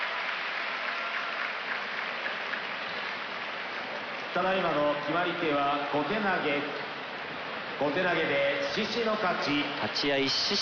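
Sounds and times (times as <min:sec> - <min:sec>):
arena audience applause: 0:00.0 - 0:04.4
speech: 0:04.4 - 0:06.8, 0:07.8 - 0:10.6.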